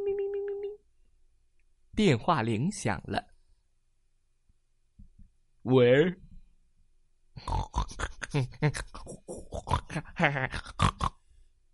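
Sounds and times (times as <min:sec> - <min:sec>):
speech: 0:02.0 - 0:03.3, 0:05.6 - 0:06.2, 0:07.4 - 0:11.2
person imitating noisy piglets grunting over the phone: 0:07.4 - 0:11.2.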